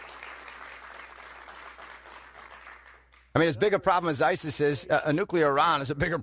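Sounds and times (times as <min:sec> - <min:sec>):
audience applause: 0:00.0 - 0:03.1
speech: 0:03.4 - 0:06.2.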